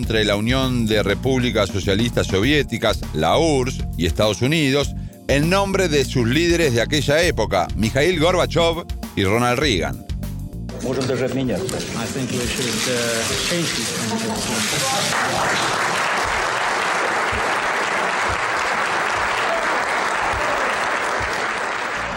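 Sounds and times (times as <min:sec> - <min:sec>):
speech: 0:00.0 - 0:10.1, 0:10.8 - 0:15.8
applause at a treaty signing ceremony: 0:11.7 - 0:22.1.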